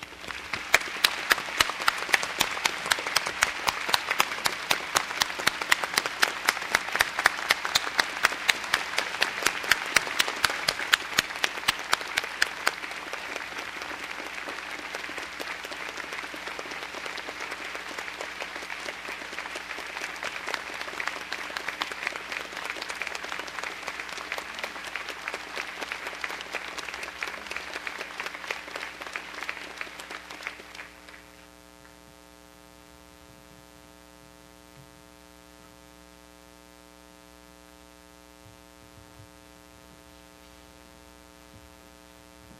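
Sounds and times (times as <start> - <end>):
large audience applause at commencement: 0.0 - 31.5.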